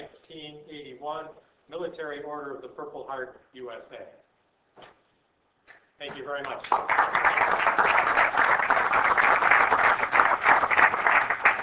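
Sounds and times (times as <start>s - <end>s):
speech: 0.3s - 4.2s, 4.8s - 5.0s, 6.0s - 8.4s
audience applause: 6.6s - 11.6s.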